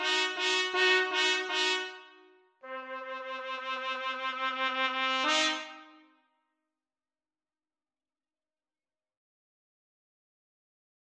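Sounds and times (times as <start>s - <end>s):
trumpet trio playing: 0.0s - 2.0s, 2.6s - 6.0s.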